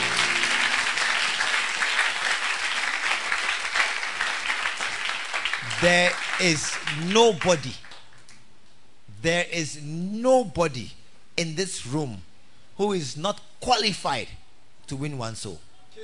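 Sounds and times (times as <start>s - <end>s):
audience clapping: 0.0s - 8.4s
speech: 5.8s - 7.8s, 9.2s - 16.0s.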